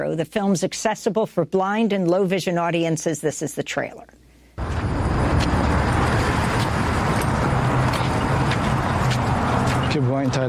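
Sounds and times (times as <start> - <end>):
speech: 0.0 - 4.2, 10.0 - 10.4
bus approaching: 4.6 - 10.4.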